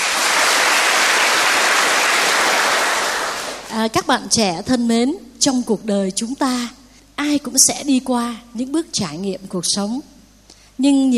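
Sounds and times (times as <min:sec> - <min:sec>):
audience applause: 0:00.0 - 0:03.7
speech: 0:03.8 - 0:10.2, 0:10.8 - 0:11.1.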